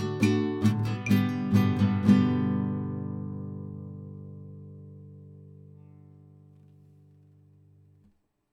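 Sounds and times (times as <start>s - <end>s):
guitar duo playing a classical piece: 0.0s - 8.1s.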